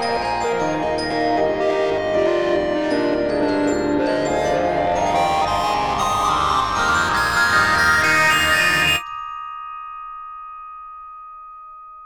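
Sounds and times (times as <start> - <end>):
molecular improvisation music: 0.0 - 9.0.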